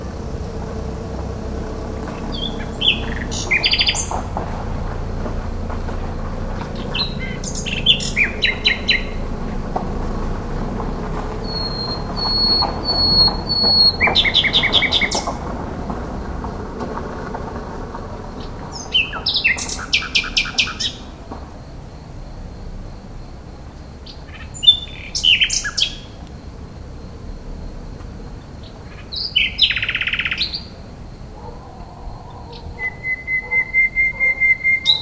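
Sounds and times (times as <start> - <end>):
low rumble of traffic: 0.0 - 34.9
common nightingale song: 2.3 - 4.2, 6.8 - 9.2, 11.4 - 15.3, 18.7 - 21.0, 24.1 - 26.1, 28.9 - 30.7, 32.4 - 34.9.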